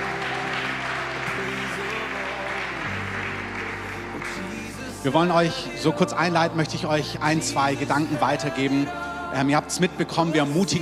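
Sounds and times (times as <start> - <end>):
crowd clapping: 0.0 - 5.3
speech: 5.0 - 10.8.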